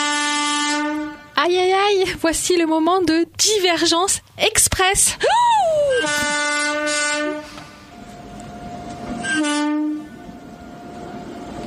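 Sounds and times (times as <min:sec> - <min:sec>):
departing train horn blaring: 0:00.0 - 0:01.4, 0:05.9 - 0:11.5
speech: 0:01.4 - 0:06.4
continuous rumble of rolling rail noise: 0:05.2 - 0:11.6.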